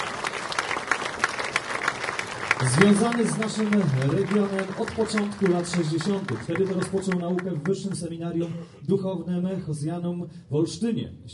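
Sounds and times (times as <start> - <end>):
audience applauding at an honorary citizenship ceremony: 0.0 - 8.2
speech: 2.6 - 11.3.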